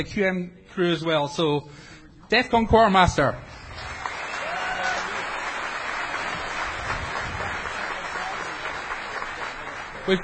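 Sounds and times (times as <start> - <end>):
speech: 0.0 - 3.6, 10.1 - 10.2
audience applause: 3.7 - 10.2.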